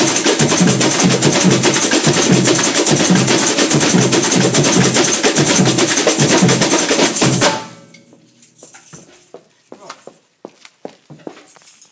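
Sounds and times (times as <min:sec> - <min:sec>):
drum kit beat: 0:00.0 - 0:09.0.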